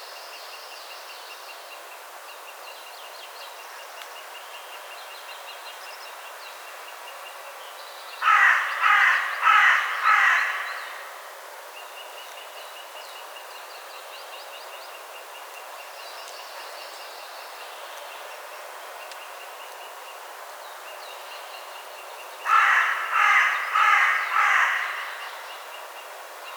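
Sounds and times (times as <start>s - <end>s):
Carrion crow Corvus corone cawing: 8.2s - 11.2s, 22.4s - 25.4s.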